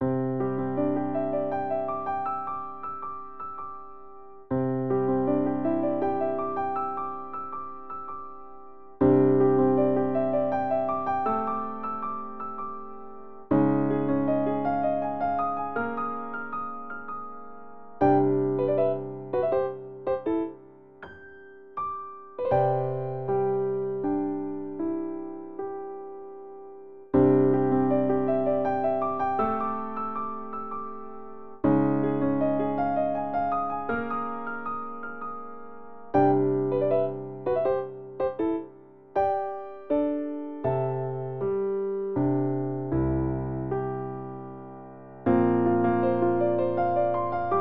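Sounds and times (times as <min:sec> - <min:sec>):
piano: 0:00.0 - 0:47.5.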